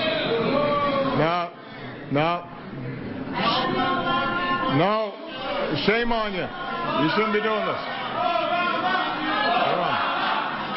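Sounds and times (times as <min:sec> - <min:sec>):
reporters chanting a name in unison: 0:00.0 - 0:01.2, 0:03.3 - 0:10.7
speech: 0:01.2 - 0:01.4, 0:02.1 - 0:04.0, 0:04.7 - 0:09.0.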